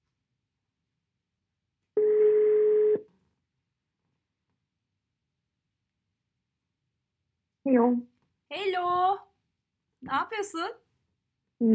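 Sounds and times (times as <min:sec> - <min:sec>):
telephone ringing tone on an outgoing call: 0:02.0 - 0:03.0
speech: 0:07.7 - 0:09.3, 0:10.0 - 0:10.8, 0:11.6 - 0:11.7.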